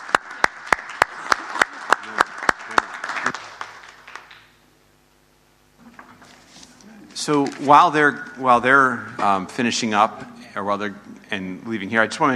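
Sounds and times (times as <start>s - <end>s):
audience applause: 0.0s - 4.5s
speech: 7.2s - 12.3s.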